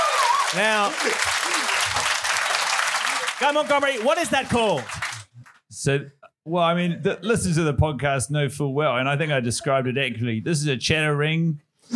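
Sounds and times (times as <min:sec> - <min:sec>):
audience applause: 0:00.0 - 0:05.6
speech: 0:00.5 - 0:02.2, 0:03.4 - 0:05.0, 0:05.8 - 0:11.9.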